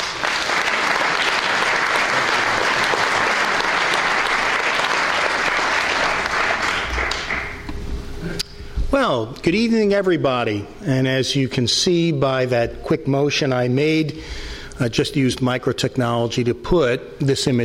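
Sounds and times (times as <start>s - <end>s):
audience applause welcoming a dean to the podium for an engineering lecture: 0.0s - 7.7s
speech: 9.0s - 17.6s.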